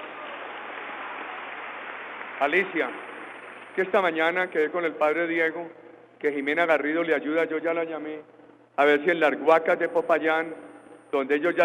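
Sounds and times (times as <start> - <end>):
audience applause: 0.0 - 3.8
speech: 2.4 - 3.1, 3.8 - 11.6.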